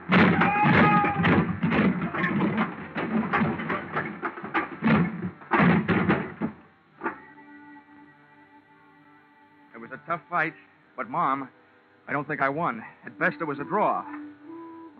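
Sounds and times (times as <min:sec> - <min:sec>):
dolly crashing into pile of wooden boxes: 0:00.0 - 0:06.7
speech: 0:10.2 - 0:14.2.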